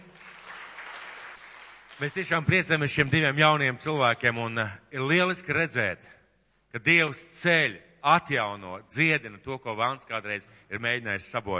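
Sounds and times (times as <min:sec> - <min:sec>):
crowd clapping in a large room: 0:00.0 - 0:03.4
speech: 0:02.0 - 0:11.5.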